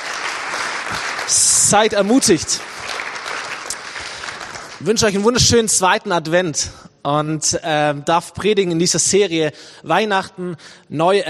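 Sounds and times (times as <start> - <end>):
audience applauding: 0.0 - 5.4
speech: 1.3 - 2.7, 4.8 - 11.2.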